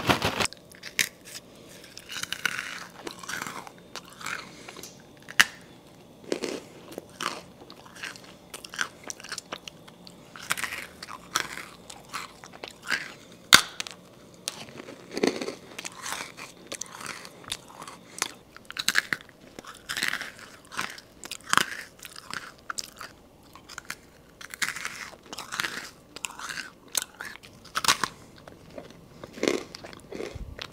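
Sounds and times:
person eating freeze-dried ice cream: 0:00.2 - 0:05.4, 0:06.1 - 0:13.5, 0:14.1 - 0:30.7.

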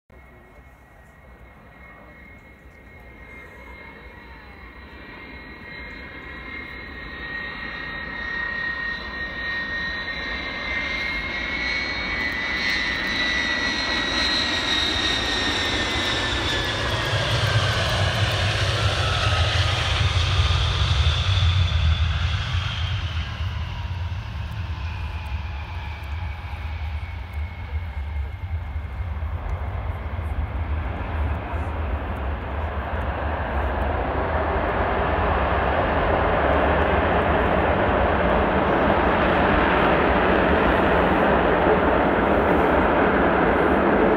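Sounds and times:
Tupolev Tu-154 airliner: 0:00.1 - 0:44.1.

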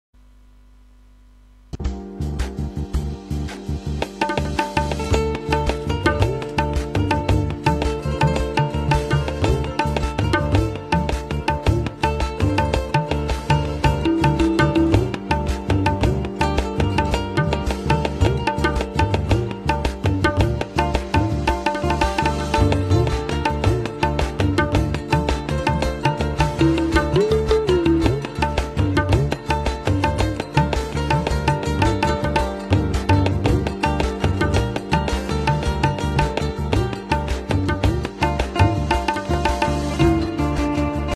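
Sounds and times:
percussion: 0:01.7 - 0:41.1.

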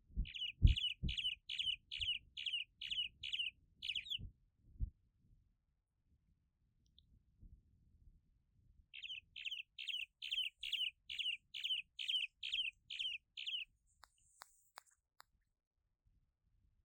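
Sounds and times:
Cuban martin chirping: 0:00.3 - 0:04.2, 0:09.0 - 0:14.9.

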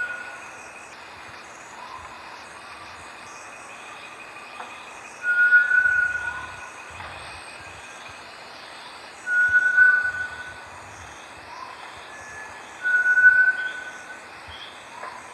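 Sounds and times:
Bartlett's tinamou calling with long pure whistled notes: 0:05.2 - 0:06.7, 0:09.3 - 0:10.6, 0:12.3 - 0:14.1.

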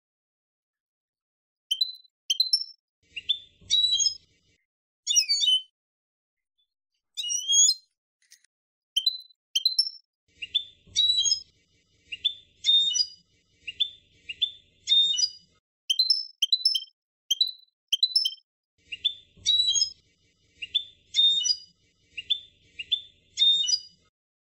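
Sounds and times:
finch singing: 0:01.7 - 0:04.3, 0:05.1 - 0:05.7, 0:07.2 - 0:07.9, 0:09.0 - 0:24.0.

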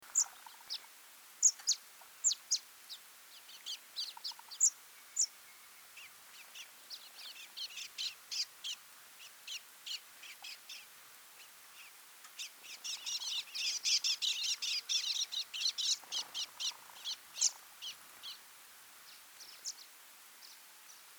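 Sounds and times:
scaly-feathered weaver calls: 0:01.4 - 0:10.9, 0:11.8 - 0:18.4.

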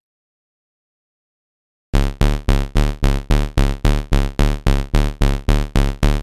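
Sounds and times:
retro game music: 0:02.0 - 0:06.2.

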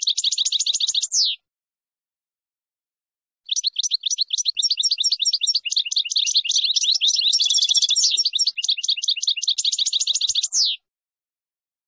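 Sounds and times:
finch song: 0:00.0 - 0:01.4, 0:03.5 - 0:10.9.

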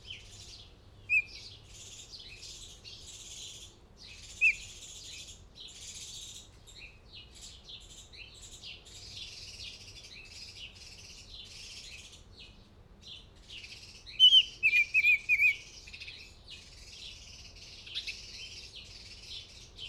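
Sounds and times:
Northern oriole whistling: 0:14.2 - 0:15.6.

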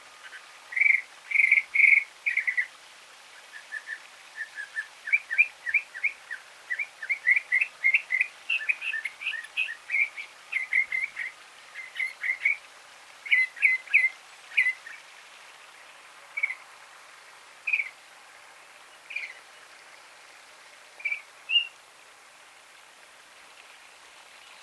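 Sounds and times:
Northern mockingbird song: 0:00.2 - 0:02.7, 0:03.5 - 0:12.6, 0:13.2 - 0:15.0, 0:16.4 - 0:16.6, 0:17.7 - 0:18.0, 0:19.0 - 0:19.4, 0:21.0 - 0:21.8.

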